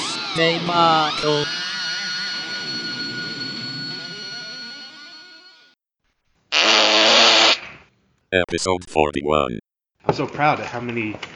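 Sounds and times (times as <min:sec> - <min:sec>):
speech: 0:00.4 - 0:01.6, 0:08.3 - 0:11.3
fart noises: 0:06.6 - 0:07.7.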